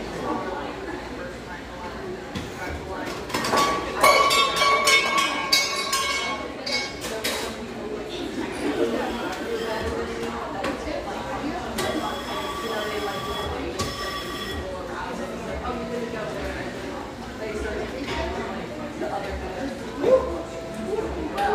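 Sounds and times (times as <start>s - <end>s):
murmur of many voices in a casual eatery: 0.0s - 21.5s
dishes and cutlery clinking: 2.6s - 7.7s.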